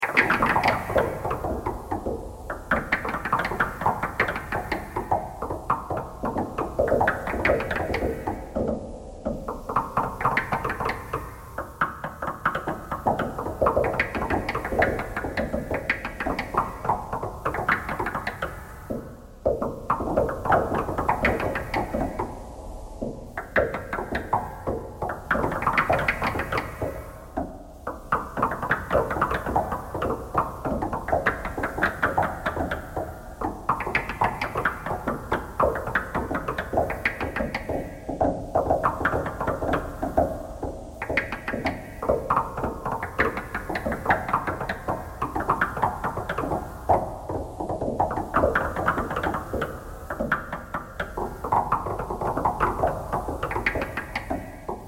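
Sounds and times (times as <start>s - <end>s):
knocking thread noise: 0.1s - 54.8s.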